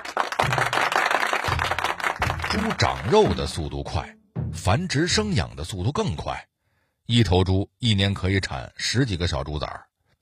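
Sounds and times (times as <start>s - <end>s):
applause sound effect: 0.0s - 4.0s
speech: 2.5s - 6.5s, 7.1s - 9.9s.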